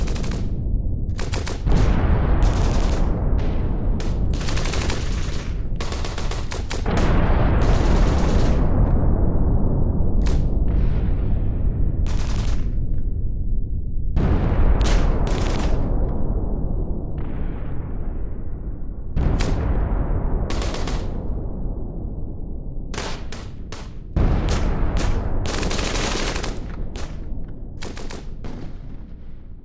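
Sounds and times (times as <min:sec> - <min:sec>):
WWII battlefield gunfire: 0:00.0 - 0:09.2, 0:10.2 - 0:11.0, 0:12.0 - 0:13.0, 0:14.2 - 0:16.2, 0:19.2 - 0:21.5, 0:22.9 - 0:29.6
WWII battlefield explosions: 0:00.0 - 0:29.6.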